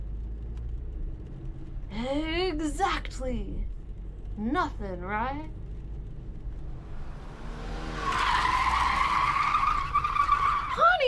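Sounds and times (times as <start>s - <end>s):
low engine rumble: 0.0s - 11.0s
speech: 2.0s - 3.8s, 4.4s - 5.6s
car tires skidding during a near crash: 5.8s - 11.0s.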